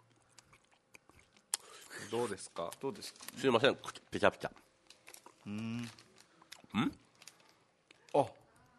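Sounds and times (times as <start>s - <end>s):
someone chewing a wasabi-flavoured hard candy: 0.0s - 8.6s
speech: 2.1s - 4.7s, 5.4s - 6.0s, 6.7s - 7.0s, 8.1s - 8.4s
short vocal sounds: 5.4s - 6.1s.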